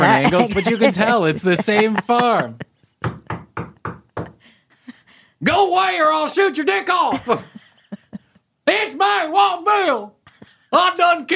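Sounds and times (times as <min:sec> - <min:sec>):
laughter: 0:00.0 - 0:02.7, 0:07.1 - 0:08.3
speech: 0:00.2 - 0:03.1, 0:05.4 - 0:07.6, 0:08.7 - 0:11.3
knocking on a door: 0:03.0 - 0:04.4.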